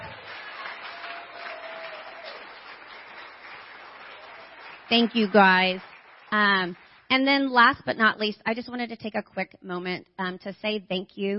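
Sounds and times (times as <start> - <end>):
audience applause: 0.0 - 7.1
speech: 4.9 - 11.3.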